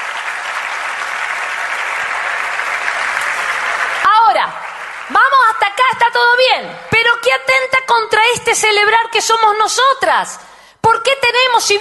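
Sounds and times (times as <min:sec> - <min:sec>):
audience applause: 0:00.0 - 0:05.6
speech: 0:04.5 - 0:11.7.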